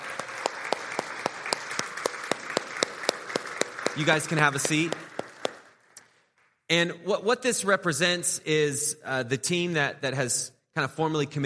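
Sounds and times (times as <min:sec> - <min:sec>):
audience applauding: 0:00.0 - 0:06.2
speech: 0:04.0 - 0:05.1, 0:06.7 - 0:11.4.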